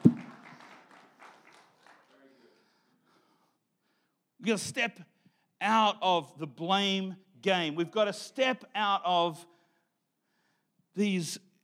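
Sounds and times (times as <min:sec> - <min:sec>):
person clapping: 0:00.0 - 0:02.2
speech: 0:04.4 - 0:09.5, 0:11.0 - 0:11.5.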